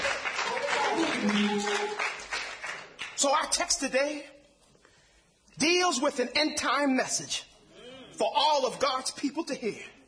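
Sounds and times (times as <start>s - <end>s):
audience clapping hands: 0.0s - 3.4s
speech: 1.2s - 1.7s, 3.2s - 4.4s, 5.6s - 7.5s, 8.2s - 10.0s.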